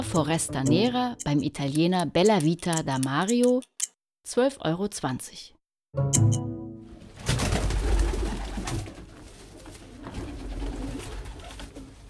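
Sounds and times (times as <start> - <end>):
speech: 0.1 - 6.5
pigeons cooing: 7.2 - 12.0.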